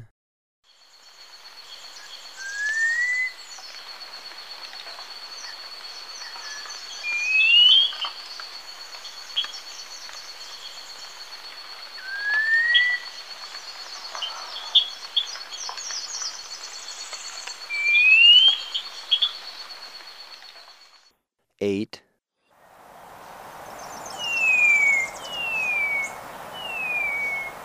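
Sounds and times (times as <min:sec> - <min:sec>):
steady high insect drone: 0:00.7 - 0:21.0, 0:22.6 - 0:27.6
black-winged saltator whistling rising notes: 0:01.9 - 0:03.8, 0:06.1 - 0:08.0, 0:11.9 - 0:21.0, 0:23.6 - 0:27.6.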